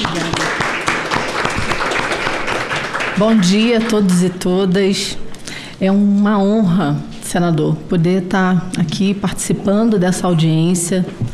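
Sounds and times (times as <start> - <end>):
audience applause: 0.0 - 3.9
speech: 3.2 - 5.2, 5.8 - 11.3.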